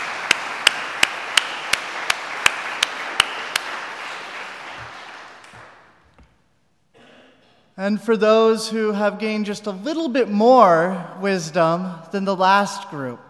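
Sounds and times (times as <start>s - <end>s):
audience applause: 0.0s - 5.8s
speech: 7.8s - 13.2s.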